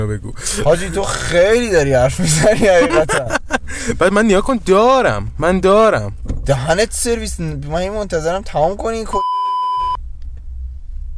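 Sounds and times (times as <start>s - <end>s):
low rumbling noise: 0.0s - 9.2s, 9.8s - 11.1s
speech: 0.0s - 9.3s
laughter: 2.2s - 3.9s
censor bleep: 9.1s - 10.0s.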